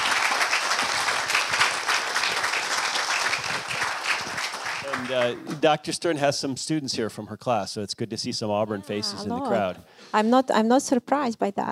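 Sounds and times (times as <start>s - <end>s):
audience applause: 0.0s - 5.6s
speech: 5.0s - 11.7s.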